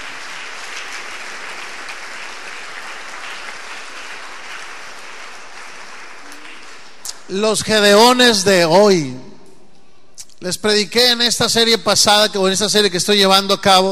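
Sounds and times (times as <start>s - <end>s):
audience applause: 0.0s - 7.1s
speech: 7.3s - 9.3s, 10.4s - 13.9s.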